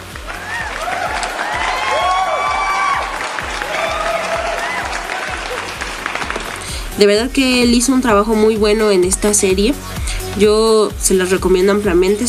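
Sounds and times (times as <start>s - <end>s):
applause: 0.0s - 7.0s
speech: 7.0s - 12.2s.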